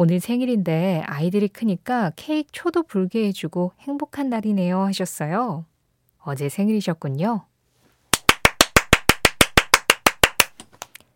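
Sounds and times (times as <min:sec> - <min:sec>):
speech: 0:00.0 - 0:07.5
celebratory hand claps: 0:08.1 - 0:11.0.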